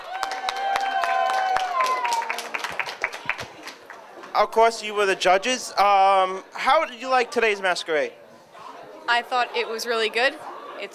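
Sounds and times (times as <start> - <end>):
cheering voices: 0.0 - 2.6
audience applause: 0.0 - 4.3
speech: 4.4 - 8.2, 9.1 - 10.9.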